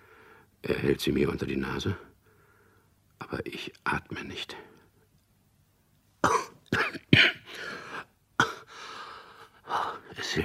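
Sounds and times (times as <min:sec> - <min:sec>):
speech: 0:00.6 - 0:02.1, 0:03.2 - 0:04.7, 0:10.3 - 0:10.4
coughing fit: 0:06.2 - 0:08.7.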